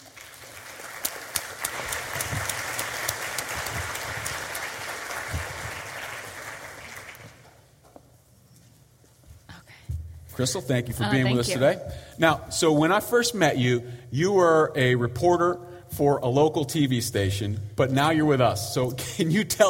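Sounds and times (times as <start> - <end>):
audience applause: 0.0 - 7.6
speech: 10.4 - 19.6.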